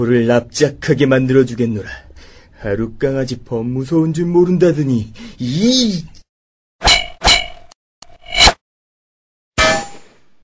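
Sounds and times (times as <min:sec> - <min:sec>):
speech: 0:00.0 - 0:02.0, 0:02.6 - 0:06.2
big hammer clashing against a sword: 0:06.8 - 0:07.7, 0:09.6 - 0:10.1.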